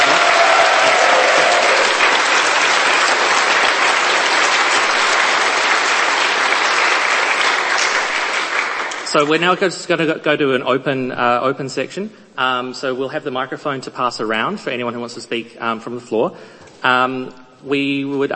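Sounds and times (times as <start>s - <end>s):
audience applause: 0.0s - 9.4s
speech: 9.2s - 18.3s.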